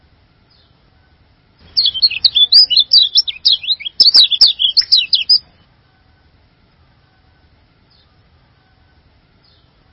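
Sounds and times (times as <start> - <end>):
bird song: 0.4 - 0.8, 1.6 - 5.7, 7.8 - 9.9.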